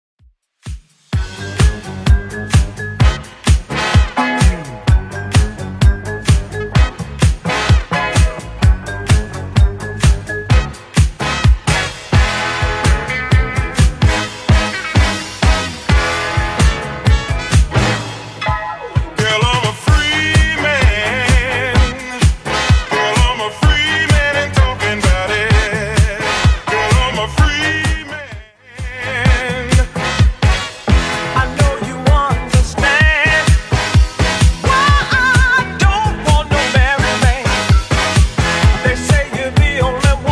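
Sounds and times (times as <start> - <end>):
1970s-style beat at 128 bpm: 0.6 - 40.3.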